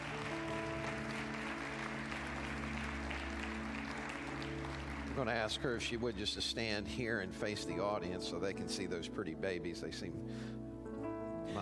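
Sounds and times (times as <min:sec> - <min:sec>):
church congregation applause for a baby dedication: 0:00.0 - 0:06.4
speech: 0:05.2 - 0:10.7.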